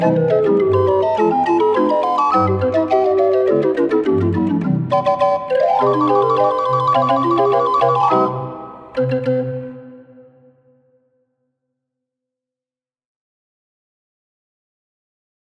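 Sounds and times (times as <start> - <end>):
36-key barrel organ playing: 0.0 - 10.2.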